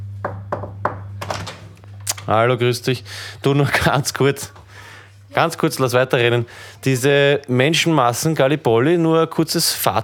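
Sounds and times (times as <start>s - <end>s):
knocking on a door: 0.2s - 1.1s
speech: 2.3s - 4.6s, 5.3s - 10.0s.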